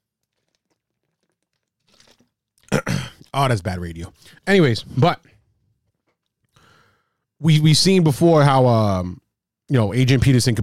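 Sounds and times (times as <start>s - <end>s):
person drinking water: 0.0s - 3.4s
speech: 3.4s - 5.4s, 7.4s - 10.6s.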